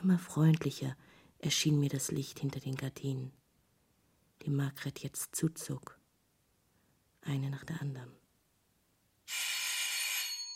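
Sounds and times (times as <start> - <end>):
speech: 0.0 - 3.4, 4.4 - 6.0, 7.2 - 8.2
doorbell ringing: 9.3 - 10.5.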